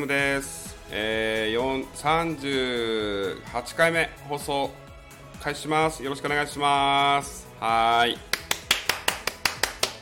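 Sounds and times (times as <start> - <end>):
speech: 0.0 - 4.8, 5.4 - 8.3
accidental sharp hand claps: 8.2 - 10.0.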